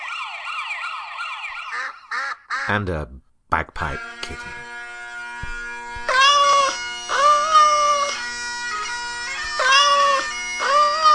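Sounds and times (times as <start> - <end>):
warbling siren wail from a police siren duck: 0.0 - 2.2, 5.9 - 11.1
speech: 1.7 - 4.7.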